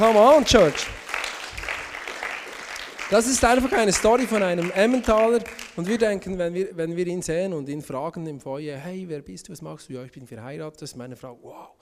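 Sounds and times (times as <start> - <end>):
speech: 0.0 - 1.0, 3.1 - 11.8
audience applause: 0.0 - 6.3.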